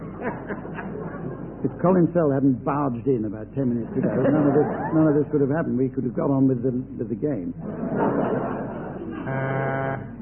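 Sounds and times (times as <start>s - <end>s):
laughter: 0.0s - 1.7s, 3.7s - 5.6s, 7.6s - 10.2s
speech: 0.2s - 8.6s, 9.3s - 10.1s
buzzer sounding like a thick horn: 9.3s - 10.1s.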